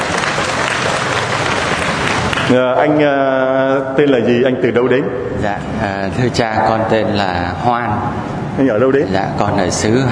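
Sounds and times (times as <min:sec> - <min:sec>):
audience applause at a church gathering: 0:00.0 - 0:02.7
speech: 0:02.5 - 0:10.1.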